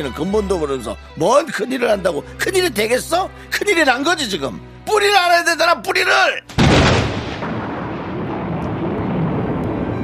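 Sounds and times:
speech: 0.0 - 6.9
thunder crash: 6.6 - 10.0.

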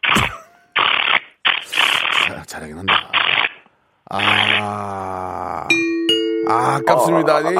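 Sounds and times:
person vocally imitating an electric drill driving in a screw: 0.1 - 2.3, 4.1 - 5.6
speech: 2.5 - 3.2, 4.1 - 5.8, 6.5 - 7.5.

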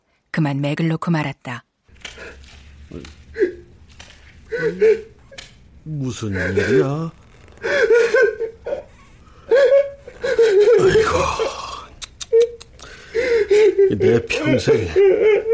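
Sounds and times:
speech: 0.4 - 2.3, 2.9 - 3.6, 4.6 - 5.1, 5.8 - 8.2, 10.8 - 11.6, 13.8 - 15.5
man sobbing loudly: 2.4 - 3.8, 4.4 - 5.4, 6.2 - 15.5.

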